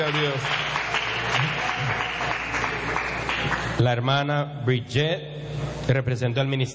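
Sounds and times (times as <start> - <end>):
speech: 0.0 - 3.2, 3.8 - 6.7
applause in a church for a sister: 0.0 - 3.8.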